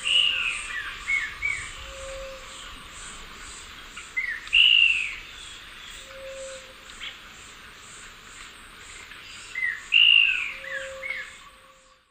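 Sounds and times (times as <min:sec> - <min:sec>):
Cercomacra nigrescens duet in eastern lowlands of South America: 0:00.0 - 0:12.0.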